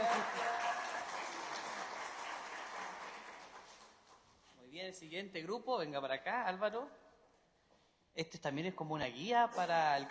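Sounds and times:
group applauding: 0:00.0 - 0:04.2
speech: 0:04.8 - 0:07.0, 0:08.2 - 0:10.0.

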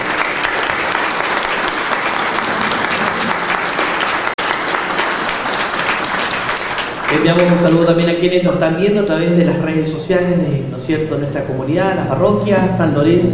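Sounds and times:
audience applause: 0:00.0 - 0:08.4
speech: 0:07.1 - 0:13.3.

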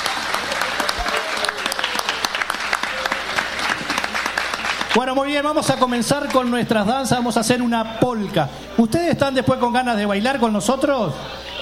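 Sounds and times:
audience applause: 0:00.0 - 0:06.7
speech: 0:05.0 - 0:11.4.

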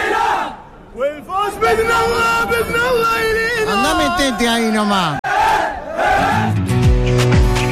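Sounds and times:
football fans chanting: 0:00.0 - 0:00.6, 0:05.2 - 0:06.6
speech: 0:01.0 - 0:06.5.

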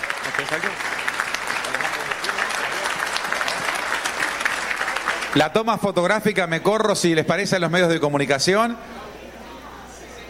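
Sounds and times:
loud applause: 0:00.0 - 0:05.6
speech: 0:00.3 - 0:01.0, 0:05.3 - 0:09.1.

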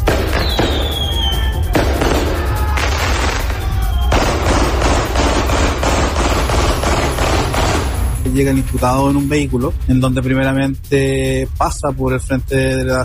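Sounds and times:
fireworks at a wake in Quilicura: 0:00.0 - 0:08.0
gunshots at a wake in Quilicura: 0:00.0 - 0:08.5
speech: 0:08.4 - 0:13.0.

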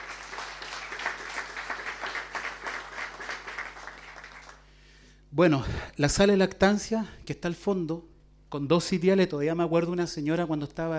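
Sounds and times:
audience applause: 0:00.0 - 0:04.7
speech: 0:05.4 - 0:10.9.

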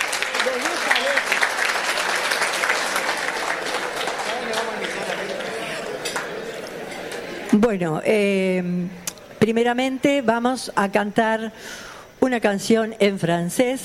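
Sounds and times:
audience applause: 0:00.0 - 0:07.6
speech: 0:07.6 - 0:13.8.

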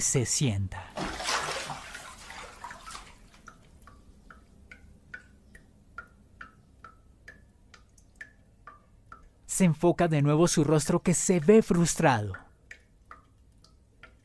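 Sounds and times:
speech: 0:00.0 - 0:01.0, 0:09.6 - 0:12.5
rush of water: 0:01.0 - 0:03.2
tap dripping water incessantly: 0:02.7 - 0:09.4, 0:12.3 - 0:14.2.

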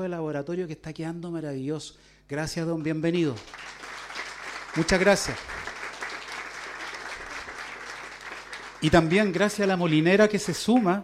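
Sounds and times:
speech: 0:00.0 - 0:03.8, 0:04.7 - 0:05.7, 0:08.8 - 0:11.0
crowd clapping: 0:02.8 - 0:11.0.

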